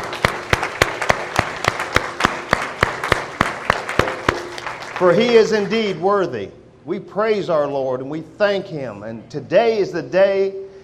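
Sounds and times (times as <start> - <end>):
hand clapping in praise: 0.0 - 6.1
speech: 5.0 - 10.6.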